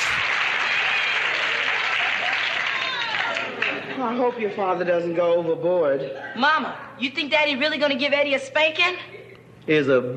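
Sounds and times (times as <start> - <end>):
audience applauding: 0.0 - 4.0
speech: 4.0 - 10.1.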